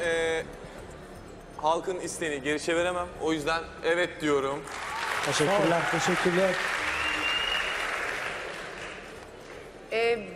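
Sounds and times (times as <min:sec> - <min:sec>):
speech: 0:01.6 - 0:06.8
audience applause: 0:04.7 - 0:09.6.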